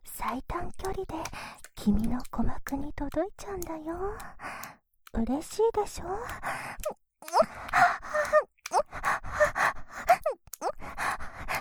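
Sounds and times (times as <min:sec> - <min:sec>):
speech: 0:00.3 - 0:04.5, 0:05.1 - 0:07.6
woman breathy panting and moaning: 0:04.1 - 0:04.8, 0:06.1 - 0:11.5.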